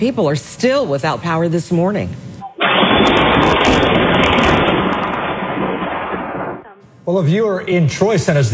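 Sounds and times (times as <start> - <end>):
speech: 0.0 - 2.3, 7.1 - 8.5
lightning strike: 2.6 - 6.7.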